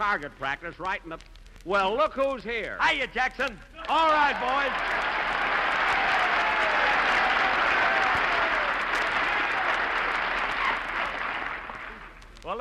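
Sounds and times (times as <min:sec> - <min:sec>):
speech: 0:00.0 - 0:04.9
audience applause: 0:03.9 - 0:12.3.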